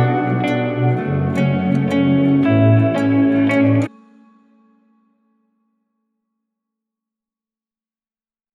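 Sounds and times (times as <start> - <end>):
hip hop music: 0.0 - 3.9.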